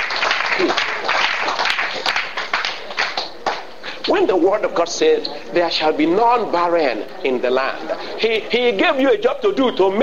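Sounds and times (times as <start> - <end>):
audience clapping: 0.0 - 4.2
speech: 4.2 - 10.0.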